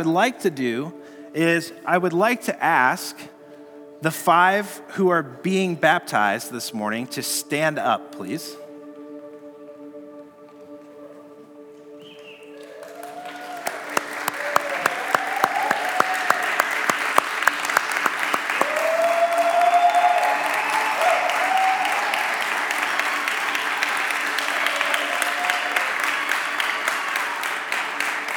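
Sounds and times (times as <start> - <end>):
speech: 0.0 - 3.3, 4.0 - 8.6
faint whistling or vocal tones: 12.0 - 12.8
audience applauding: 12.2 - 28.3.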